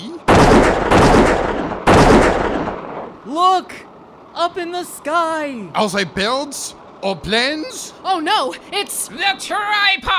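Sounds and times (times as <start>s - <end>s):
gunshots: 0.3s - 3.2s
speech: 3.3s - 10.1s.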